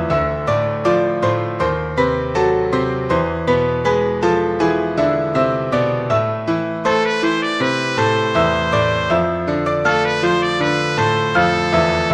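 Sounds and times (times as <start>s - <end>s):
piano in a trumpet and piano duet: 0.0s - 12.1s
trumpet in a trumpet and piano duet: 6.9s - 12.1s.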